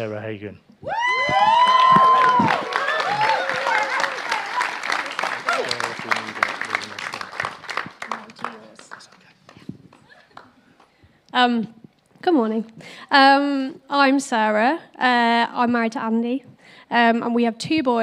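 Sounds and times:
speech: 0.0s - 2.7s, 11.4s - 18.0s
audience cheering: 0.9s - 8.3s
audience applause: 1.2s - 10.6s.

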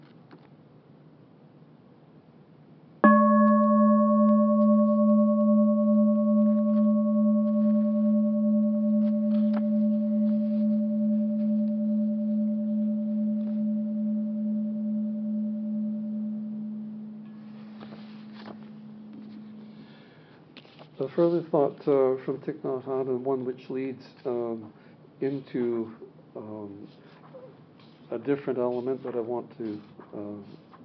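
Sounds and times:
meditation bell ringing: 3.0s - 20.0s
speech: 21.2s - 26.0s, 28.2s - 30.6s.

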